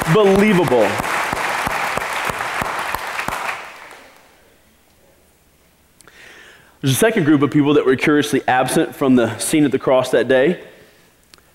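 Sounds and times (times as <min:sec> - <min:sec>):
audience clapping: 0:00.0 - 0:04.3
speech: 0:00.1 - 0:01.1, 0:06.8 - 0:10.7.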